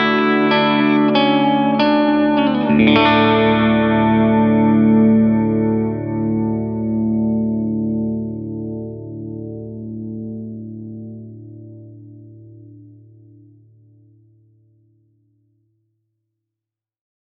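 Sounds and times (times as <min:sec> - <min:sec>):
analog tube BBD echo effect: 0:00.0 - 0:08.3.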